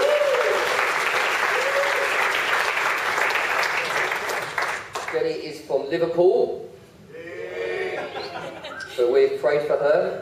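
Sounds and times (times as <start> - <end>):
ripple of applause: 0.0 - 5.2
speech: 5.3 - 6.8, 9.0 - 10.2
laughter: 7.6 - 9.2.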